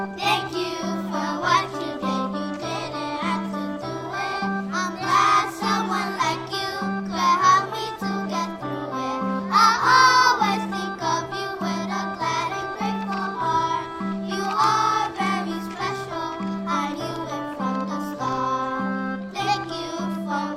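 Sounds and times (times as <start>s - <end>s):
choir singing: 0.2s - 20.5s.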